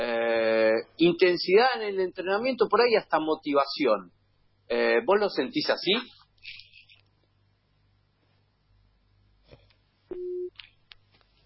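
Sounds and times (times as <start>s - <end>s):
speech: 1.0s - 6.6s
telephone beep after dropped call: 10.1s - 10.5s.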